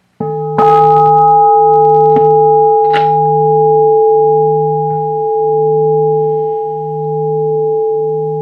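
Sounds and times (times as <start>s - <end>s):
gong ringing: 0.2s - 8.3s.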